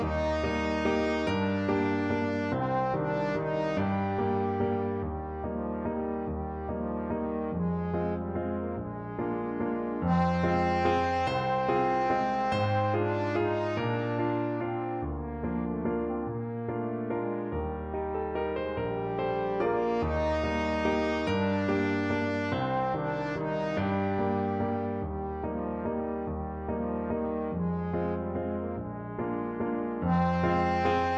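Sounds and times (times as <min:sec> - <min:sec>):
trombone playing a waltz: 0:00.0 - 0:31.1.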